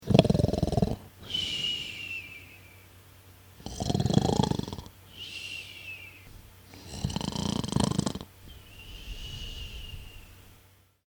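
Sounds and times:
sleeping man snoring: 0:00.0 - 0:01.8, 0:03.6 - 0:04.9, 0:06.7 - 0:10.4.

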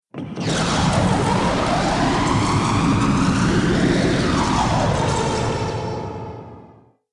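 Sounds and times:
sci-fi spacecraft afterburner: 0:00.3 - 0:06.8.

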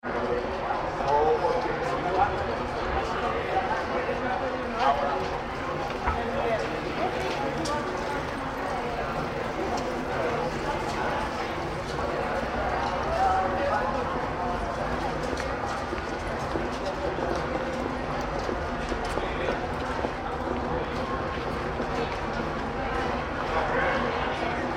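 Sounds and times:
crowd walla on a pedestrian walkway in a Spanish city centre: 0:00.0 - 0:24.7.

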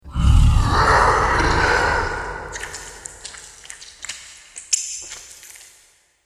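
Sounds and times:
hellhound monster roaring: 0:00.0 - 0:03.6
hellhound monster eating: 0:00.1 - 0:05.8.

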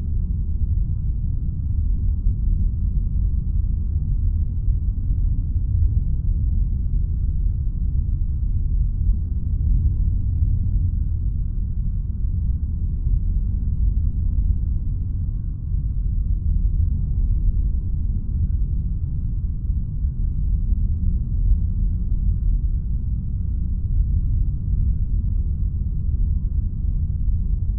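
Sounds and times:
deep space planetary rumble ambience: 0:00.0 - 0:27.7.

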